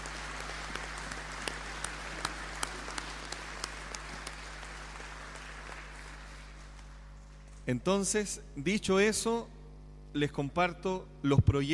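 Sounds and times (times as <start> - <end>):
audience applause: 0.0 - 7.4
speech: 7.7 - 11.7.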